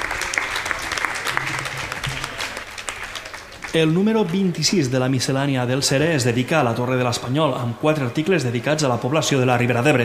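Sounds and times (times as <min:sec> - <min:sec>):
audience applause: 0:00.0 - 0:04.7
speech: 0:03.7 - 0:10.0.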